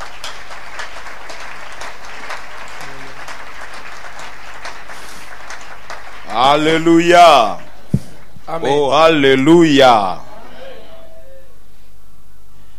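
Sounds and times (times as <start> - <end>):
church congregation applauding in praise of God: 0.0 - 8.9
speech: 6.3 - 7.6, 8.5 - 10.2.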